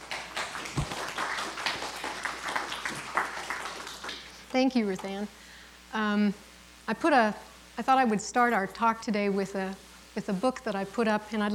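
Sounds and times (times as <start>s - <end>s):
audience applause welcoming a speaker to a talk: 0.0s - 4.4s
speech: 4.5s - 11.5s.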